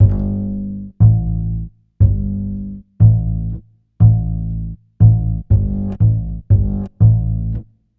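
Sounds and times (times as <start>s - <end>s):
upright bass in Ukrainian Gypsy style: 0.0s - 7.9s.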